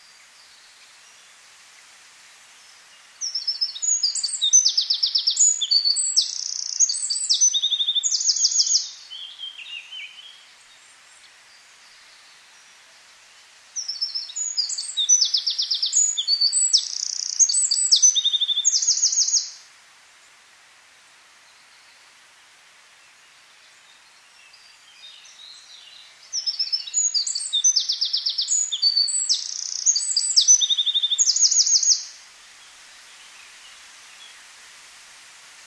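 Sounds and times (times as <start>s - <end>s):
Eurasian wren song: 3.1s - 19.6s, 23.7s - 34.4s.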